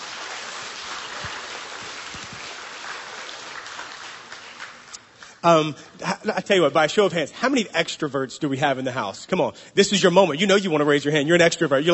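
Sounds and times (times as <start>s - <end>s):
audience clapping hands: 0.0s - 5.5s
speech: 5.4s - 11.9s.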